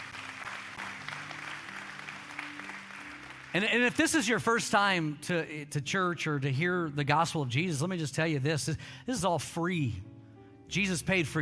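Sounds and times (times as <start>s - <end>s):
audience clapping hands: 0.0s - 4.5s
speech: 3.6s - 10.1s, 10.7s - 11.4s.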